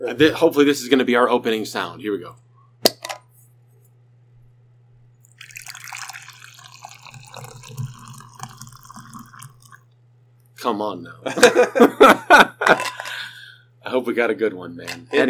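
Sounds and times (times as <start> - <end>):
speech: 0.0 - 2.5, 10.6 - 12.9, 13.9 - 15.2
liquid splashing in a cup: 5.2 - 9.9
cup clinking: 5.3 - 9.8, 12.7 - 13.2
laughter: 11.2 - 13.4.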